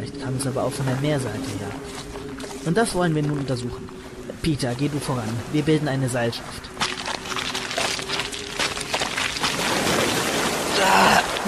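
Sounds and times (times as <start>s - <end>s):
speech: 0.2s - 2.0s, 2.6s - 6.7s
sea spray splashing: 5.2s - 11.4s.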